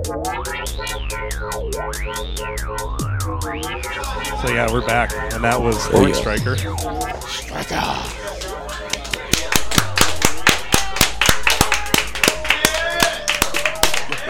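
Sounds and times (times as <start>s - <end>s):
speech: 0.0s - 8.4s
hands clapping into a microphone: 8.4s - 14.2s.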